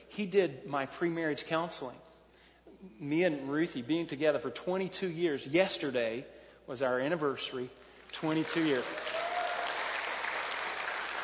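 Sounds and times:
speech: 0.2 - 2.1, 2.8 - 9.2
audience applause: 8.2 - 11.2.

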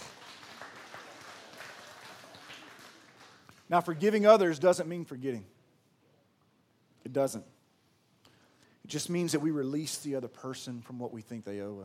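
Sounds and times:
soft golf clap applause from a group: 0.0 - 3.7
speech: 3.7 - 5.6, 7.1 - 7.6, 8.9 - 11.8.

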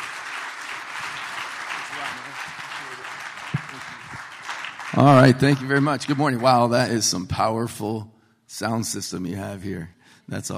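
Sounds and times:
audience applause welcoming a guest speaker at a morning gathering: 0.0 - 6.7
speech: 2.2 - 4.1, 5.0 - 10.5.

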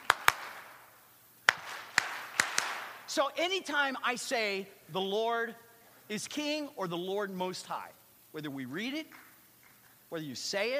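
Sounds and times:
rhythmic hand claps: 0.0 - 3.0
speech: 3.2 - 9.2, 10.1 - 10.7.

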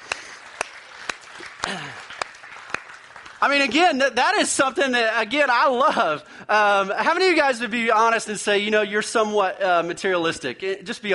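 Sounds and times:
audience clapping: 0.0 - 4.5
speech: 1.7 - 2.1, 3.4 - 11.1.

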